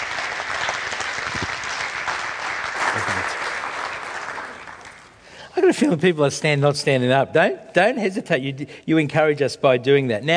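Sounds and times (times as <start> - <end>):
crowd clapping: 0.0 - 5.2
speech: 5.7 - 10.3.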